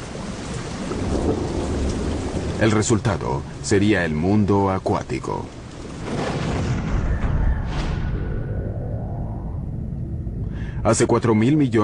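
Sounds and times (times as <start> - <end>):
steady dense rain hissing: 0.0 - 6.9
deep rolling rumble of thunder: 0.2 - 3.7, 5.4 - 11.0
speech: 2.6 - 5.6, 10.8 - 11.8.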